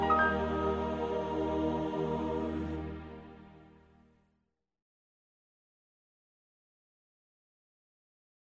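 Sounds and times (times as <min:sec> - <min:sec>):
instrumental praise music: 0:00.0 - 0:04.1.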